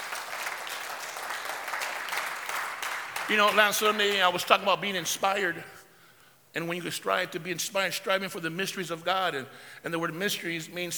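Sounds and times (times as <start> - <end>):
audience clapping: 0.0 - 4.8
speech: 3.3 - 5.8, 6.6 - 10.9.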